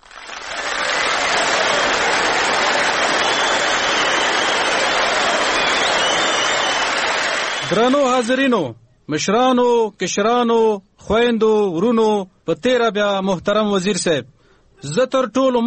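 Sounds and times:
audience applause for an award recipient: 0:00.0 - 0:08.1
speech: 0:07.7 - 0:15.6.

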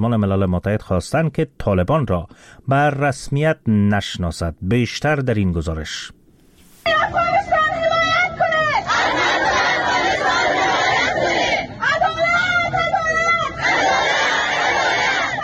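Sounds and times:
speech: 0:00.0 - 0:06.2
Afghan women chanting and shouting at a protest in Islamabad: 0:06.9 - 0:15.4
protest crowd hubbub in Islamabad: 0:07.0 - 0:15.4.

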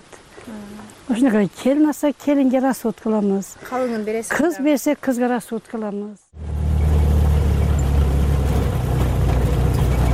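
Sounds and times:
speech: 0:00.5 - 0:06.2
old Russian UAZ off-road vehicle engine rumbling: 0:06.4 - 0:10.1.

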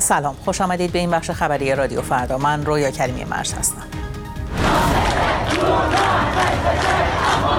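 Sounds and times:
speech: 0:00.1 - 0:04.0, 0:04.7 - 0:07.5
large crowd of anti-government protesters chanting in unison: 0:04.5 - 0:07.5.

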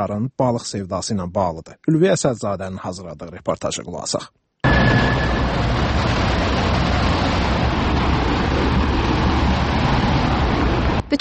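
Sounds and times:
speech: 0:00.0 - 0:06.4
cars driving past potholes near a bridge: 0:04.6 - 0:11.1.

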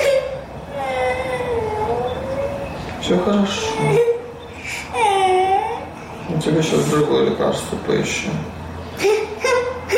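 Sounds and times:
little girl crying after a minor burn: 0:00.0 - 0:02.7, 0:03.5 - 0:06.0, 0:09.0 - 0:09.9
speech: 0:03.1 - 0:04.1, 0:06.4 - 0:09.1.

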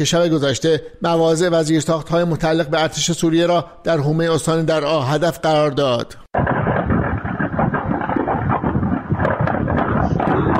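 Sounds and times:
speech: 0:00.0 - 0:06.6
successive explosions at ammunition depot: 0:06.4 - 0:10.5.

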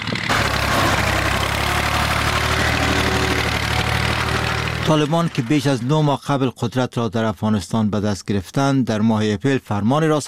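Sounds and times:
tractor engine destroying poppy field: 0:00.0 - 0:06.6
speech: 0:04.9 - 0:10.2.

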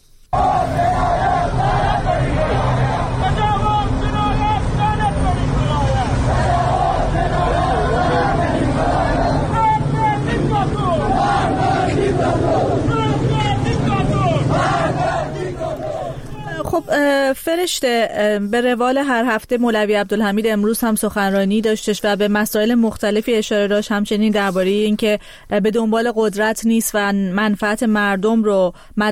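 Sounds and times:
protesters shouting and chanting in the streets of Iranshahr, Iran: 0:00.4 - 0:17.0
speech: 0:16.9 - 0:29.1.

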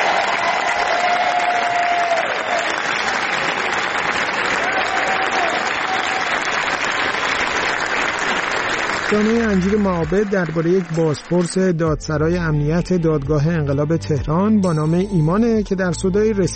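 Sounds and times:
whistles and cheers: 0:00.0 - 0:06.8
large festival audience applauding: 0:00.0 - 0:11.7
speech: 0:09.1 - 0:16.5.

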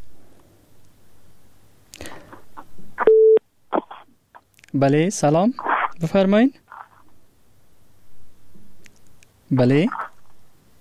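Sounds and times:
phone line beep after a caller's call disconnected: 0:03.1 - 0:03.4
speech: 0:04.7 - 0:06.6, 0:09.5 - 0:10.0.

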